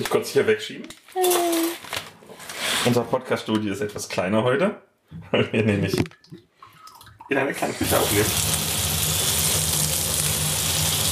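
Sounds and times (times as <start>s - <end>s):
speech: 0.0s - 1.7s, 2.8s - 6.5s, 7.3s - 8.6s
kitchen tap water running: 6.8s - 11.1s.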